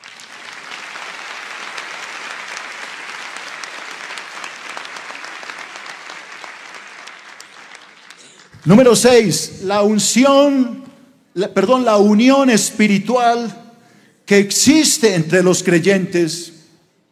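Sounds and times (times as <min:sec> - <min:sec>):
audience applause: 0:00.0 - 0:09.2
speech: 0:08.6 - 0:13.6, 0:14.3 - 0:16.6.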